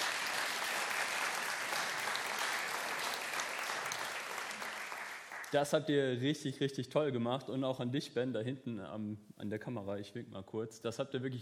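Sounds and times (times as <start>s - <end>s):
audience clapping applause: 0.0s - 5.6s
speech: 5.5s - 11.3s.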